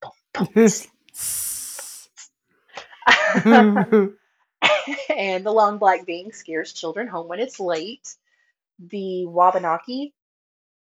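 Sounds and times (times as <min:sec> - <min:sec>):
speech: 0:00.4 - 0:01.4, 0:03.4 - 0:04.2, 0:04.9 - 0:08.2, 0:08.8 - 0:10.2
voice imitating a snake's hiss: 0:00.4 - 0:02.1
laughter: 0:03.1 - 0:04.1.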